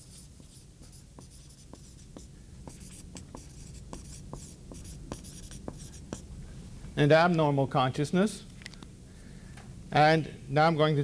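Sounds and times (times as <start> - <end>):
scratching of notes being written on a board: 0.0 - 6.3
speech: 7.0 - 8.5, 10.0 - 11.0.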